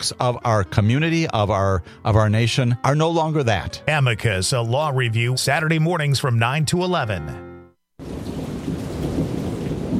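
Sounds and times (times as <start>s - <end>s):
speech: 0.0s - 8.2s
deep rumbling thunder: 8.0s - 9.9s
heavy rain pouring down: 8.0s - 9.9s.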